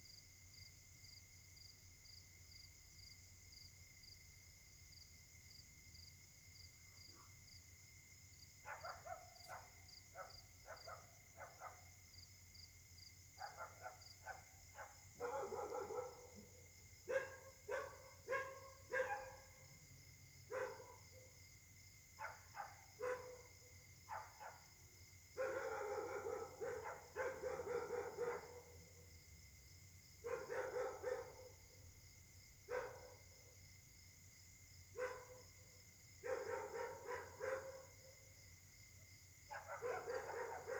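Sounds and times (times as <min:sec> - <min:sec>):
steady high insect hum: 0:00.0 - 0:40.7
dogs barking: 0:08.7 - 0:11.9, 0:13.4 - 0:19.6, 0:20.5 - 0:21.3, 0:22.2 - 0:23.5, 0:24.1 - 0:24.7, 0:25.4 - 0:28.8, 0:30.3 - 0:31.6, 0:32.7 - 0:33.2, 0:35.0 - 0:35.4, 0:36.2 - 0:37.9, 0:39.5 - 0:40.7.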